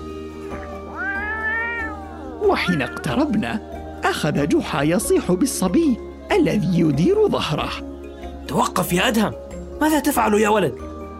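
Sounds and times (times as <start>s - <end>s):
cat meowing: 0.5s - 3.7s
speech: 2.4s - 7.9s, 8.5s - 10.9s.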